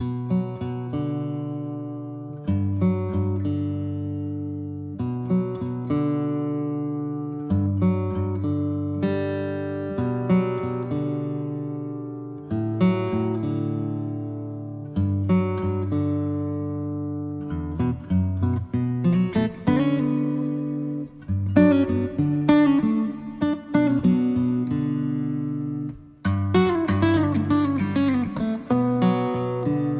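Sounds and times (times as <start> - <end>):
solo guitar: 0.0 - 29.9.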